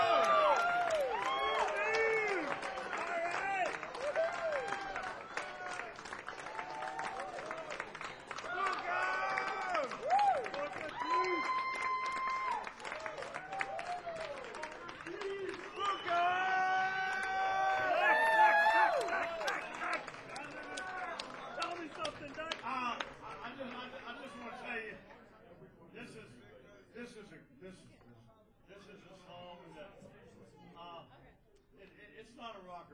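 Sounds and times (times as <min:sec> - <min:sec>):
crowd cheering with whoops and shouted voices: 0:00.0 - 0:14.5, 0:15.2 - 0:21.4
crowd clapping: 0:00.0 - 0:24.4.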